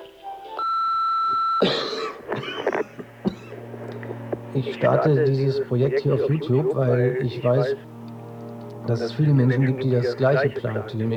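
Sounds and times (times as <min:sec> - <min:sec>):
person coughing: 0:01.6 - 0:03.6
laughter: 0:01.6 - 0:11.1
speech: 0:04.6 - 0:07.9, 0:08.9 - 0:11.1.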